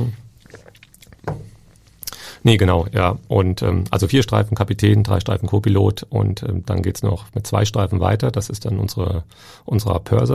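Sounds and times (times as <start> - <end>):
taking a sip of water: 0.0 - 2.4
speech: 2.4 - 10.3.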